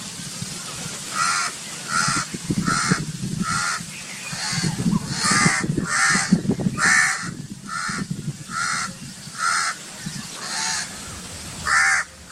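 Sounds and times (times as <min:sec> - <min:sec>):
calm bird ambience: 0:00.0 - 0:12.3
crow cawing: 0:01.1 - 0:03.8, 0:04.4 - 0:09.8, 0:10.4 - 0:10.9, 0:11.6 - 0:12.3.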